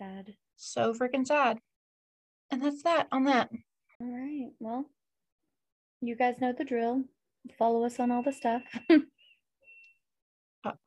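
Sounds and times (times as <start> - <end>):
speech: 0.6 - 1.7, 2.5 - 5.0, 6.0 - 9.1, 10.6 - 10.8
clothes dryer beeping: 7.8 - 10.0.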